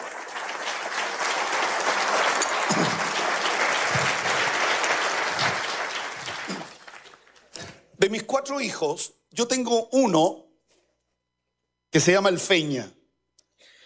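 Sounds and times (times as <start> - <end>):
audience applause: 0.0 - 7.4
speech: 8.1 - 10.4, 11.9 - 13.0.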